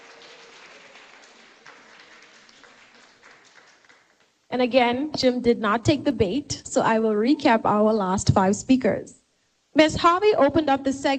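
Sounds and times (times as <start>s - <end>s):
audience applause: 0.0s - 4.3s
speech: 4.5s - 9.2s, 9.8s - 11.1s.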